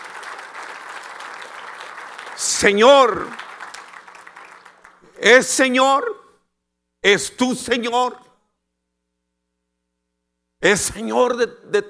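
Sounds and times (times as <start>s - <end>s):
audience applause: 0.0s - 5.0s
speech: 2.4s - 3.4s, 5.2s - 6.2s, 7.0s - 8.2s, 10.6s - 11.8s.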